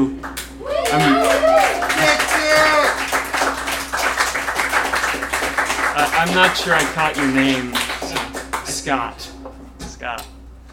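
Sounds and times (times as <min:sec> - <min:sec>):
audience applause: 0:00.6 - 0:08.8
speech: 0:06.2 - 0:07.9, 0:08.8 - 0:09.4.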